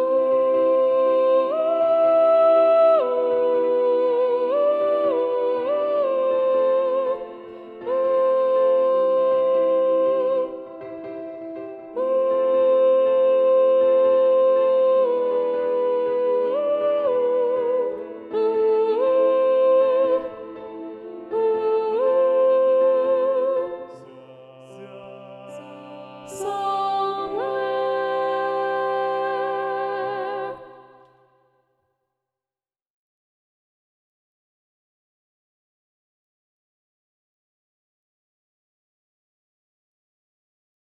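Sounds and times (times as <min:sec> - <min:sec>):
SATB choir singing with predominant soprano: 0:00.0 - 0:31.1.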